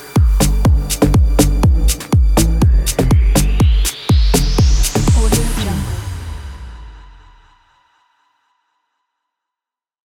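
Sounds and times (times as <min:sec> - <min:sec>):
summer pop music: 0:00.0 - 0:07.6.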